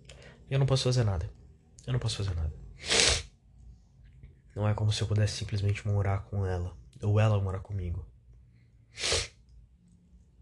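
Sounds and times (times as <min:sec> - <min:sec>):
speech: 0:00.5 - 0:03.0, 0:04.6 - 0:08.1, 0:09.0 - 0:09.2
nose sniffling: 0:02.8 - 0:03.3, 0:08.9 - 0:09.4.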